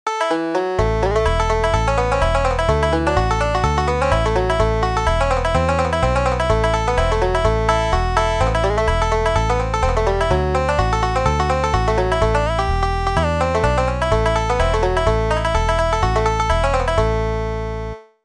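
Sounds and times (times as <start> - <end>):
banjo: 0.2 - 17.4.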